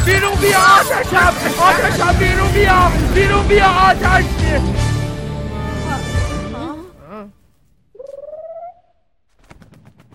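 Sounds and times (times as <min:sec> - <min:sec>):
speech: 0:00.1 - 0:04.8
bird giving a pigeon-like coo: 0:08.0 - 0:09.0.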